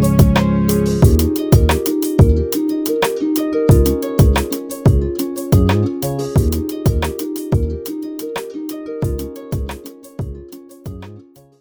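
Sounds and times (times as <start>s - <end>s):
orchestral harps: 0.0s - 11.5s.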